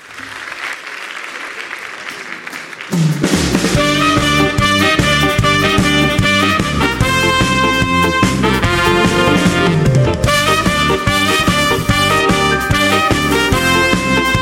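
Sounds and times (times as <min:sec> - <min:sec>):
audience applause for singer: 0:00.0 - 0:05.4
loud band music with a strong beat: 0:02.9 - 0:14.4.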